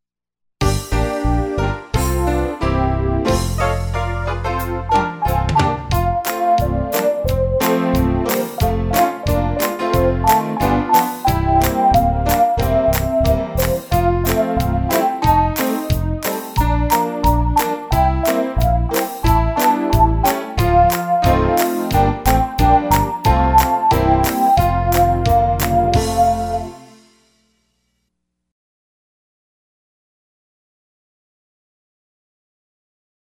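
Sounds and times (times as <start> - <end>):
song: 0.6 - 27.3.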